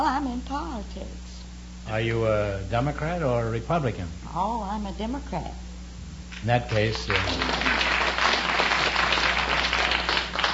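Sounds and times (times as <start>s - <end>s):
speech: 0.5s - 5.7s, 6.4s - 7.9s
quiz show studio audience applauding: 6.4s - 10.5s.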